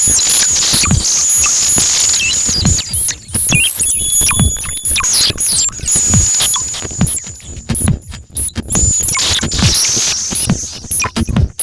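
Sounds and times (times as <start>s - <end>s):
techno noise feedback: 0.0s - 11.4s.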